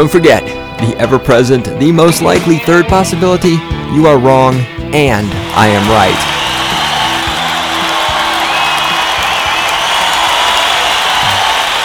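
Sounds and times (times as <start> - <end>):
speech: 0.0 - 6.4
large crowd cheering wildly: 5.3 - 11.8.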